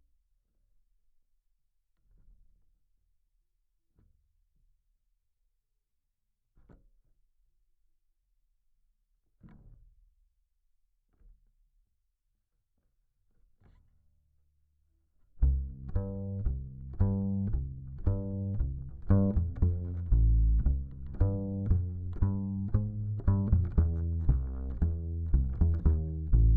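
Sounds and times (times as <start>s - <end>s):
bass guitar recorded by direct input: 15.4s - 26.5s.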